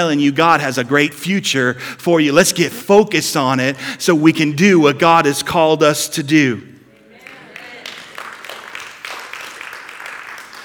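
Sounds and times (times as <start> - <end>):
speech: 0.0 - 6.7
quiet polite golf clap: 6.8 - 10.6.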